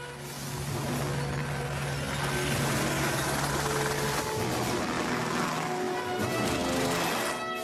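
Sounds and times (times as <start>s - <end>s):
Helicopter 234 Zulu flying north: 0.2s - 7.4s.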